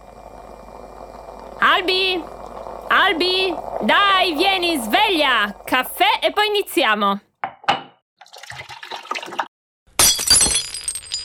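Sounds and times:
speech: 0:01.8 - 0:02.4, 0:03.0 - 0:07.3
china dish slipping and shattering: 0:10.0 - 0:11.2.

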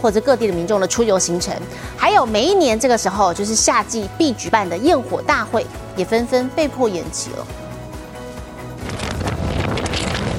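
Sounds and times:
speech: 0:00.0 - 0:07.6
strong wind from Typhoon Lan on the Ogasawara Islands: 0:08.5 - 0:10.3.

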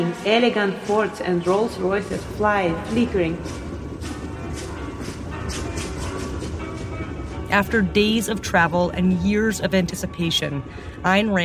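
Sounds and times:
train rumbling on rails: 0:00.0 - 0:11.4
train wheels clattering: 0:00.0 - 0:11.4
speech: 0:00.1 - 0:03.6, 0:07.5 - 0:11.4.

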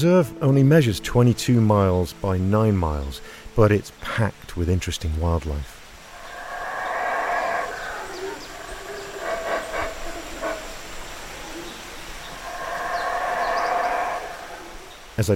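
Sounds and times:
speech: 0:00.0 - 0:05.8, 0:15.2 - 0:15.3
howler monkeys calling in the jungle in Belize: 0:06.0 - 0:15.2.

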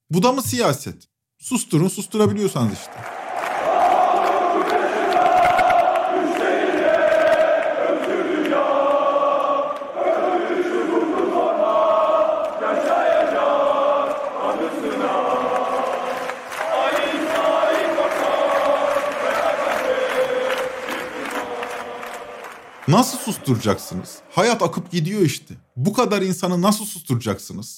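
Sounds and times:
speech: 0:00.1 - 0:03.2, 0:22.9 - 0:27.7
football fans chanting in stadium stands: 0:02.2 - 0:24.4.

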